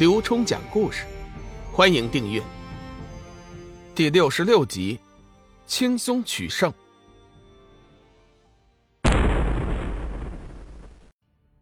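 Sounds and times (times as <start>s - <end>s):
speech: 0.0s - 2.6s, 4.0s - 5.0s, 5.7s - 6.8s
loud explosive boom from midair: 9.0s - 11.1s.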